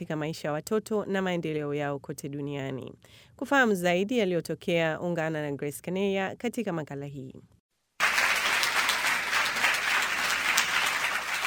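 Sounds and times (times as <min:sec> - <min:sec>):
speech: 0:00.0 - 0:07.6
children applauding as Barcelona stars Andres Iniesta and Marc-Andre Ter Stegen enter: 0:08.0 - 0:11.4.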